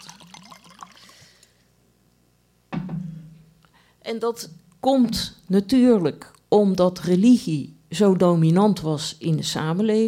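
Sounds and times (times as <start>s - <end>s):
liquid pouring into a glass: 0.0s - 1.4s
speech: 4.0s - 10.0s.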